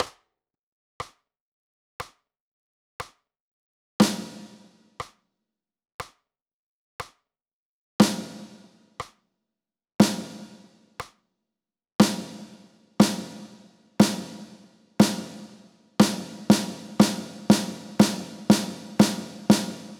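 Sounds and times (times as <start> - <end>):
drum kit playing half, quarter and eighth note rhythms: 4.0 - 5.1, 8.0 - 8.7, 10.0 - 10.6, 12.0 - 19.9.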